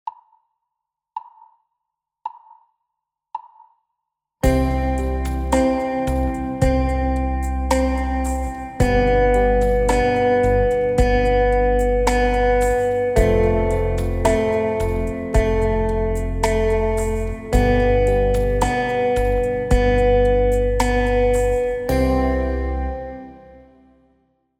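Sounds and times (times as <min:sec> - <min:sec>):
quarter notes played: 0:04.4 - 0:24.0.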